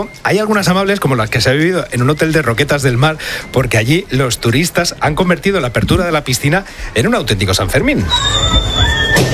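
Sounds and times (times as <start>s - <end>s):
speech: 0.0s - 8.7s
person whistling: 8.0s - 9.2s.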